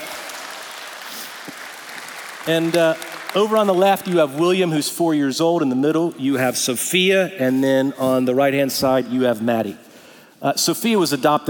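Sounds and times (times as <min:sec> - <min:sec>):
crowd applauding: 0:00.0 - 0:04.6
speech: 0:02.4 - 0:11.4.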